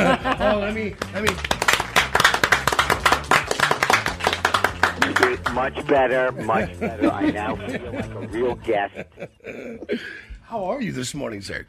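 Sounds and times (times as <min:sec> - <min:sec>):
laughter: 0:00.0 - 0:00.9, 0:04.9 - 0:10.1
speech: 0:00.1 - 0:01.6, 0:05.1 - 0:11.6
audience clapping: 0:00.8 - 0:06.4.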